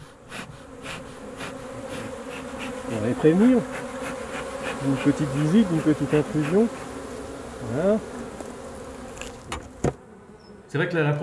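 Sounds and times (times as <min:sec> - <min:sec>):
honey bees humming at a hive: 0:00.0 - 0:11.2
speech: 0:02.9 - 0:03.8, 0:04.8 - 0:06.8, 0:07.6 - 0:08.2, 0:10.7 - 0:11.2
knock: 0:09.5 - 0:10.0.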